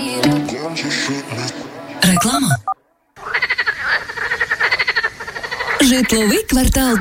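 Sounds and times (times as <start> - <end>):
speech: 0.6 - 2.7, 5.8 - 6.9
frog croaking: 2.1 - 6.9.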